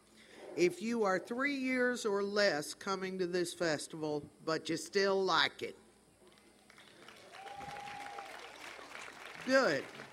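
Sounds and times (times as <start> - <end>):
speech: 0.6 - 5.8, 9.5 - 10.0
audience applauding: 6.7 - 10.1.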